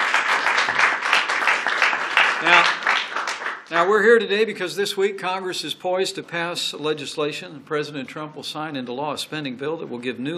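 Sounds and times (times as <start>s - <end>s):
audience applause: 0.0s - 3.9s
speech: 2.4s - 2.8s, 3.7s - 10.3s.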